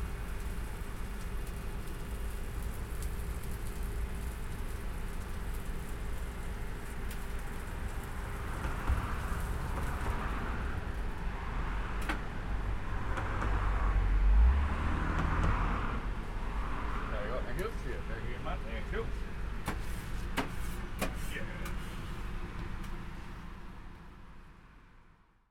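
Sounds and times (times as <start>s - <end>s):
roadside snack bar ambience in Battersea: 0.0s - 25.4s.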